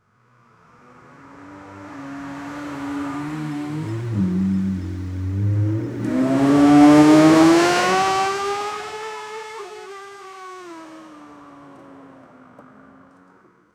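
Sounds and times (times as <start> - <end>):
Lamborghini V12 engine: 0.1 - 13.7.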